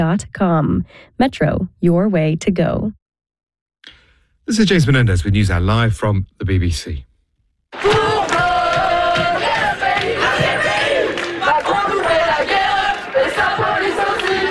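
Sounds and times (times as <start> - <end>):
speech: 0.0 - 3.0, 3.8 - 7.1, 7.8 - 8.0
students protesting in France: 7.8 - 14.5.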